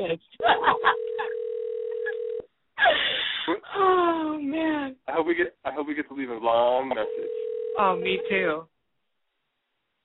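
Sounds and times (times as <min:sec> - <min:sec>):
speech: 0:00.0 - 0:01.0, 0:03.8 - 0:08.7
telephone line tone: 0:00.7 - 0:02.5, 0:07.1 - 0:08.5.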